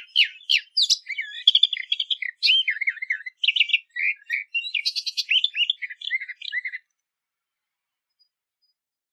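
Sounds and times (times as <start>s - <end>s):
eastern orphean warbler: 0.0s - 6.9s.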